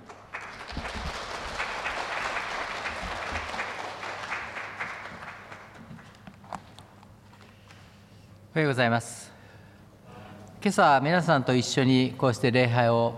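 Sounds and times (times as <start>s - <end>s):
applause: 0.0s - 6.3s
speech: 8.6s - 9.3s, 10.6s - 13.1s.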